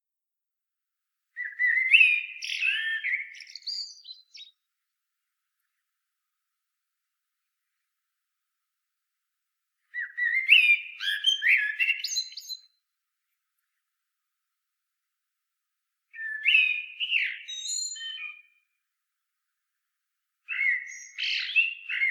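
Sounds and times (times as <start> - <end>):
common blackbird singing: 1.4 - 4.6, 10.0 - 12.8, 16.2 - 18.6, 20.5 - 22.0.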